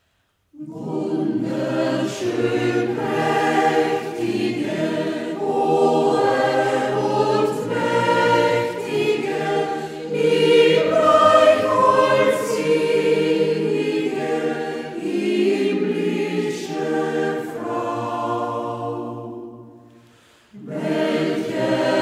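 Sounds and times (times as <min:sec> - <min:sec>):
choir music: 0:00.5 - 0:21.9.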